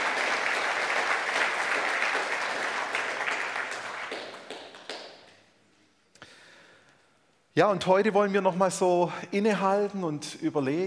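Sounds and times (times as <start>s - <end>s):
audience applause: 0.0s - 5.3s
speech: 7.6s - 10.8s.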